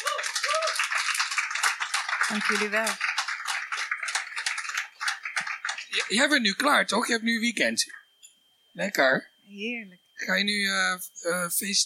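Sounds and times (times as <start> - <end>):
audience applause: 0.0 - 6.5
speech: 2.3 - 3.0, 6.0 - 8.0, 8.8 - 11.8.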